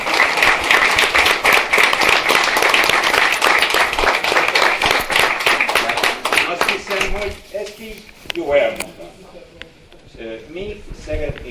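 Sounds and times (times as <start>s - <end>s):
audience applause: 0.0s - 7.4s
speech: 7.8s - 9.0s, 11.0s - 11.4s.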